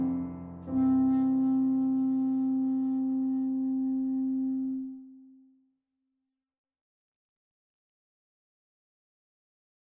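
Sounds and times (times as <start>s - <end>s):
clarinet: 0.0s - 5.6s.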